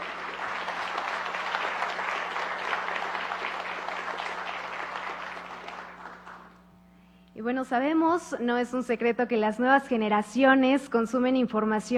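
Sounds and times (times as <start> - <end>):
audience applause: 0.0 - 6.6
speech: 7.4 - 11.9.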